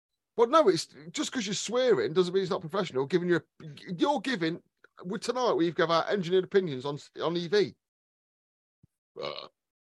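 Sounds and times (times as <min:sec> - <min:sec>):
speech: 0:00.4 - 0:07.8, 0:09.2 - 0:09.6
burp: 0:09.2 - 0:09.7.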